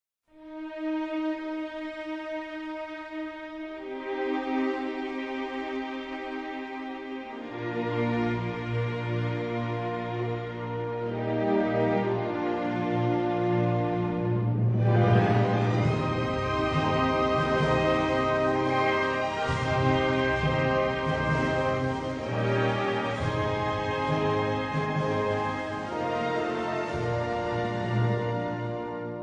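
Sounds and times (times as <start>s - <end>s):
instrumental national anthem: 0.4s - 29.2s.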